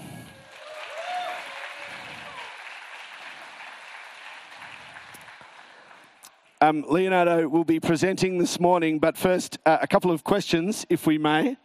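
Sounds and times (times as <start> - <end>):
audience applause in an auditorium welcoming a speaker: 0.0 - 6.5
speech: 6.6 - 11.6.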